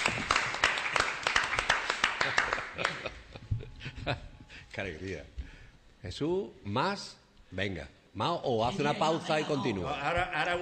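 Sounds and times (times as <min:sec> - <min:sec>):
hand clapping applause: 0:00.0 - 0:03.3
speech: 0:04.8 - 0:05.4, 0:06.0 - 0:10.6.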